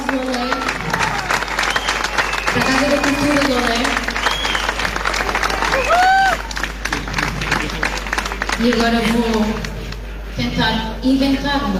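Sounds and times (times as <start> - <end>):
audience clapping: 0.0 - 10.2
piercing whistle: 1.6 - 3.5, 4.2 - 4.9
speech: 8.6 - 9.6, 10.5 - 11.7.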